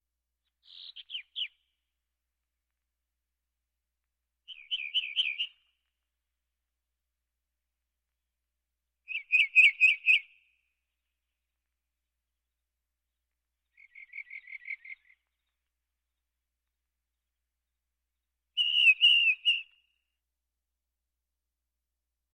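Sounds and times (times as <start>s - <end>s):
birds: 0.4s - 1.8s, 4.5s - 6.0s, 9.1s - 20.0s.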